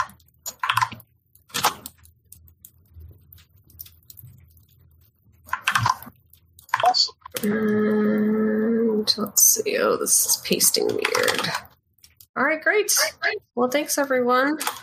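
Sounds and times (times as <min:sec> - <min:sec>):
typing on a computer keyboard: 0:00.0 - 0:08.0, 0:10.8 - 0:11.7
speech: 0:07.4 - 0:07.8, 0:09.2 - 0:11.7, 0:12.4 - 0:14.8.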